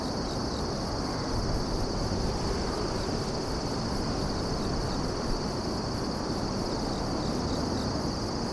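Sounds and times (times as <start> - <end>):
insect singing with rapid pulsed high chirping: 0.1 - 8.5.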